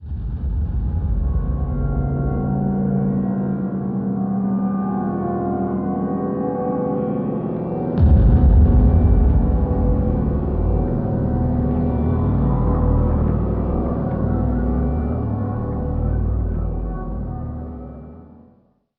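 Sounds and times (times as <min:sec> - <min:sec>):
ambience: 0:00.0 - 0:18.6.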